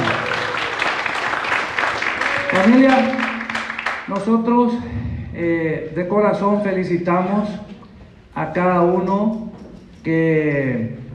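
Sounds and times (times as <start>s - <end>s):
audience applause: 0.0s - 4.1s
speech: 2.6s - 3.2s, 4.1s - 7.7s, 8.4s - 11.0s.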